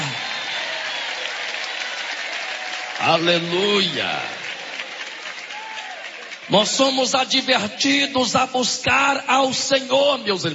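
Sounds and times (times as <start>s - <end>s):
audience applauding: 0.0s - 8.1s
speech: 3.1s - 4.4s, 6.5s - 10.5s.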